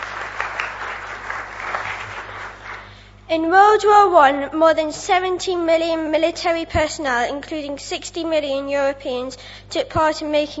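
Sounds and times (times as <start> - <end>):
audience clapping: 0.0 - 3.1
speech: 3.3 - 10.5.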